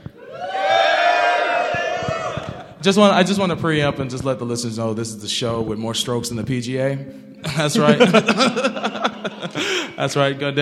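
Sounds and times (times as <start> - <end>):
studio audience cheering and whooping during a show recording: 0.1 - 2.8
speech: 2.8 - 10.6
laughter: 7.4 - 10.2.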